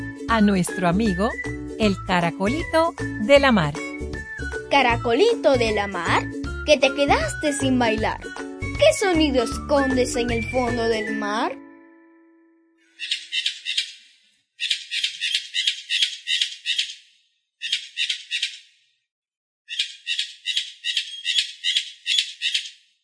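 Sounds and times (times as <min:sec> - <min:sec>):
speech: 0:00.3 - 0:03.9, 0:04.7 - 0:11.6, 0:13.0 - 0:13.2
cotorra parrot calling: 0:12.9 - 0:18.7, 0:19.7 - 0:22.9.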